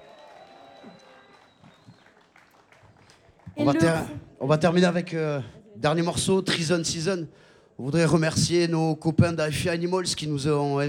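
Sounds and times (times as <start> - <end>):
festival audience applause: 0.0 - 4.2
speech: 3.6 - 10.8.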